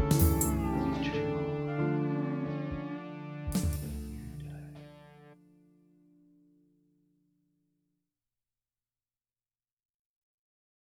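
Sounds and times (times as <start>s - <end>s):
person singing: 0.0s - 3.8s.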